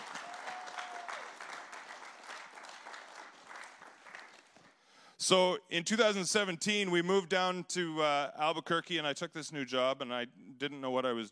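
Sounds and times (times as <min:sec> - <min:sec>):
audience applause: 0:00.0 - 0:04.7
whistle or cheer: 0:00.1 - 0:01.4
speech: 0:05.3 - 0:11.3.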